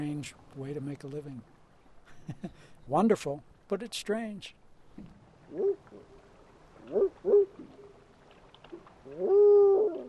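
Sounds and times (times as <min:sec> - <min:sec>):
speech: 0:00.0 - 0:01.6, 0:02.3 - 0:06.1, 0:06.8 - 0:07.8, 0:08.7 - 0:10.0
person imitating spotted owl calls: 0:09.1 - 0:10.0.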